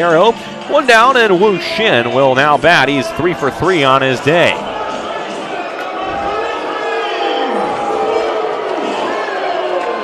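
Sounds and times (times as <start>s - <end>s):
speech: 0.0s - 4.7s
baseball crowd wooing: 3.0s - 10.0s.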